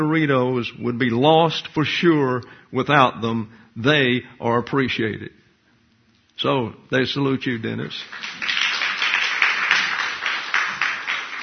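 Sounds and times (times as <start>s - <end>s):
speech: 0.0s - 5.4s, 6.4s - 8.5s
crowd applauding: 8.0s - 11.4s.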